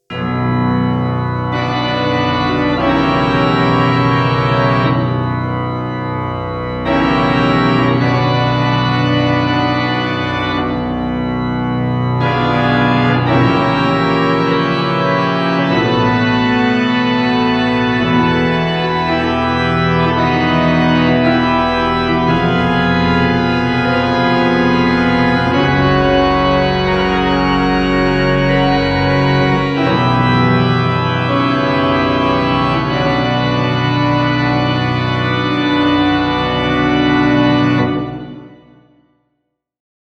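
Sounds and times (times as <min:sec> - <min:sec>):
phantom pipe organ: 0:00.0 - 0:38.9.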